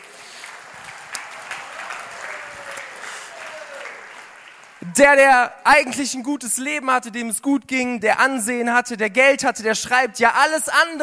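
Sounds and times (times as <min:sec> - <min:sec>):
audience applause: 0:00.0 - 0:05.0
whistle or cheer: 0:01.5 - 0:04.3
speech: 0:04.8 - 0:11.0.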